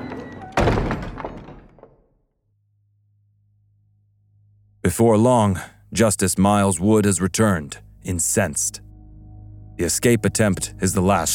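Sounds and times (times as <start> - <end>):
stockade door slammed and locked: 0.0 - 2.1
speech: 4.9 - 8.9, 9.8 - 11.3.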